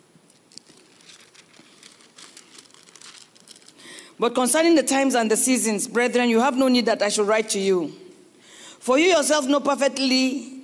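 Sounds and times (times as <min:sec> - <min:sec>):
Bible pages rustling as a church congregation opens their Bibles: 0:00.2 - 0:04.1
speech: 0:04.2 - 0:08.0, 0:08.8 - 0:10.5.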